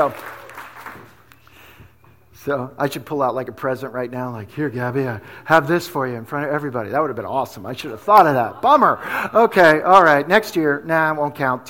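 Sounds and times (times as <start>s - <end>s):
speech: 0.0s - 0.3s, 2.4s - 11.6s
crowd applause: 0.0s - 1.3s.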